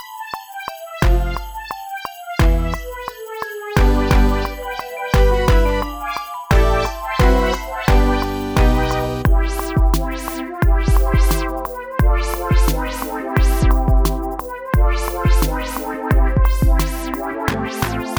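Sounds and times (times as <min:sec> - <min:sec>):
music track without drums: 0:01.0 - 0:18.1.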